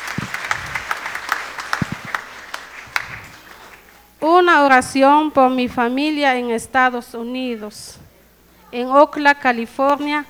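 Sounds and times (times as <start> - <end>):
loud applause: 0.0 - 4.1
speech: 4.3 - 8.0, 8.7 - 10.2.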